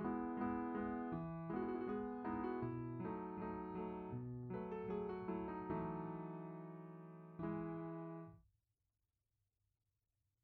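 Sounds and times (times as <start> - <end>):
art song for voice and piano: 0.0 - 8.3.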